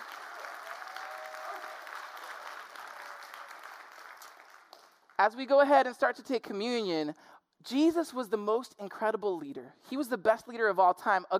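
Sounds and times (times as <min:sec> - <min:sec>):
audience clapping: 0:00.0 - 0:05.2
speech: 0:05.2 - 0:11.3.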